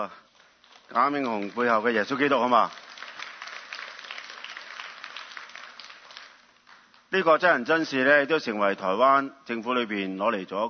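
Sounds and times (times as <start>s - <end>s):
speech: 0.0s - 0.3s, 0.9s - 2.8s, 7.1s - 10.6s
audience applause: 0.5s - 7.0s.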